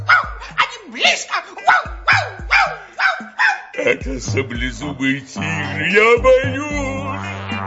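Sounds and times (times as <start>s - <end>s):
small dog yapping: 0.0s - 0.4s, 1.7s - 3.8s
speech: 4.0s - 7.4s.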